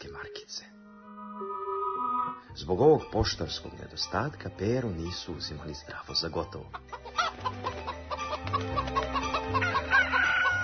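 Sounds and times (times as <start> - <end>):
speech: 2.6 - 7.8
hens clucking: 6.6 - 10.6
rooster crowing: 9.3 - 10.6.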